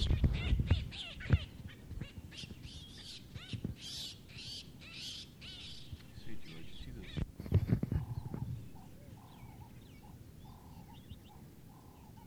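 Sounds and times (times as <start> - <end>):
birds singing: 0.0 - 12.2.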